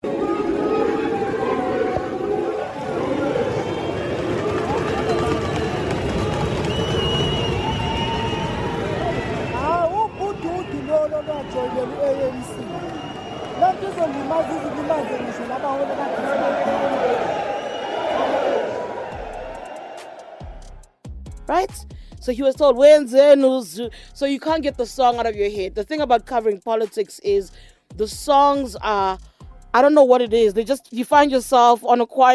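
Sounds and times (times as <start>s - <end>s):
conference crowd booing: 0.0s - 20.8s
speech: 21.6s - 32.3s.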